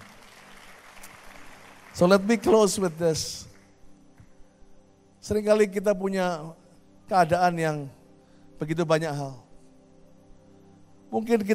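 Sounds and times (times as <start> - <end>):
audience applause: 0.0 - 3.0
speech: 2.0 - 3.5, 5.3 - 8.0, 8.6 - 9.4, 11.1 - 11.5.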